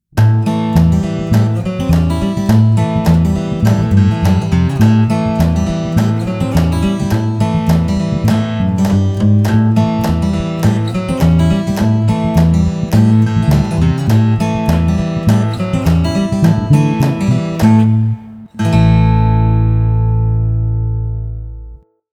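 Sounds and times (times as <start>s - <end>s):
country music: 0.2s - 21.7s.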